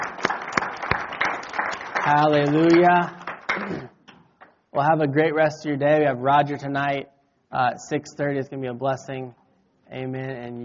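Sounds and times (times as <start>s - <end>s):
crowd applauding: 0.0s - 3.9s
speech: 2.1s - 4.0s, 4.7s - 10.6s.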